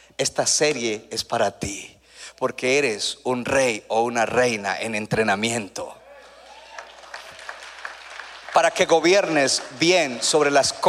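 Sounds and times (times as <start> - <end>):
speech: 0.1 - 6.0, 8.6 - 10.8
small group applauding: 6.2 - 10.8.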